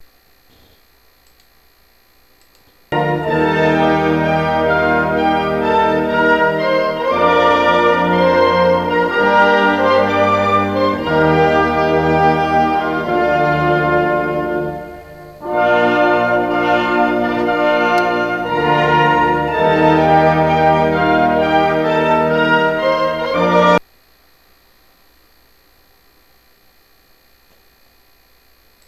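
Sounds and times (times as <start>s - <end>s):
march music: 3.0s - 23.8s.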